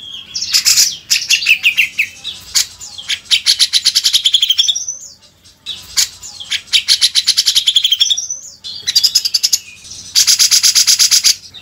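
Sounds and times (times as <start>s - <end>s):
grey-cheeked bulbul singing harsh chattering bursts: 0.0s - 11.6s.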